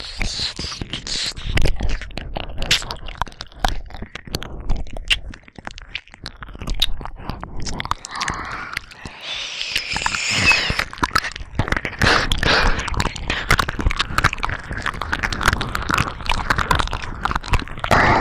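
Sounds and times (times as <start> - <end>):
binaural ear licking on both ears: 0.0 - 18.1
aroused breathing: 7.2 - 13.7, 17.9 - 18.1.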